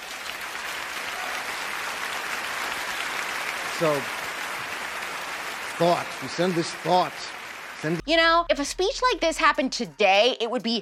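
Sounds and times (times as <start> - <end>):
applause at the Oscars: 0.0 - 8.0
speech: 3.8 - 4.2, 5.8 - 10.7.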